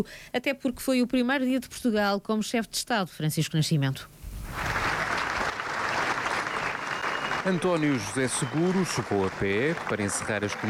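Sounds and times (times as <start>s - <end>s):
speech: 0.0s - 4.8s, 7.4s - 10.6s
crowd applause in the Alfândega courtyard in the Azores: 4.5s - 10.6s.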